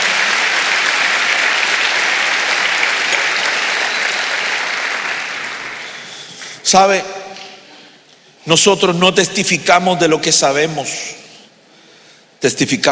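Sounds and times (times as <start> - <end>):
audience clapping hands: 0.0 - 6.6
speech: 6.7 - 7.2, 8.5 - 11.2, 12.4 - 12.9.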